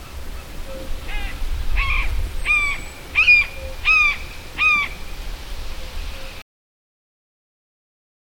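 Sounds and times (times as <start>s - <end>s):
harsh harmonic caw-like bird calls: 0.0s - 5.1s.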